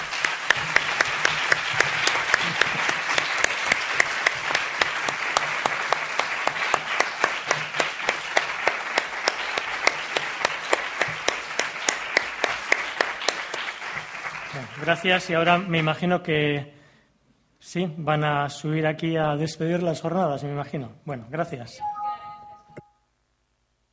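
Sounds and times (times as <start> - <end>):
audience applause: 0.0 - 15.4
speech: 14.9 - 16.8, 17.6 - 21.9.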